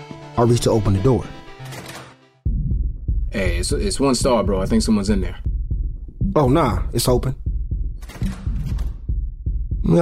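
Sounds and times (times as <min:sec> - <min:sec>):
speech: 0:00.4 - 0:01.4, 0:03.4 - 0:05.5, 0:06.3 - 0:07.4
fast heartbeat sound effect: 0:02.5 - 0:10.0.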